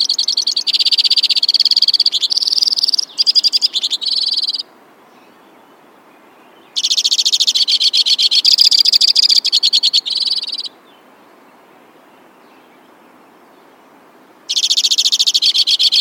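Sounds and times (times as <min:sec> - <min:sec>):
White-winged crossbill trilling: 0:00.0 - 0:04.7, 0:06.7 - 0:10.7, 0:14.5 - 0:15.9.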